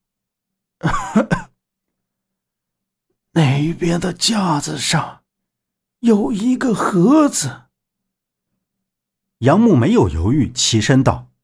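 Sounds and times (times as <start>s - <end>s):
speech: 0.8s - 1.4s, 3.4s - 5.2s, 6.0s - 7.7s, 9.4s - 11.3s
poisoned Buddhist master coughing: 0.8s - 1.6s.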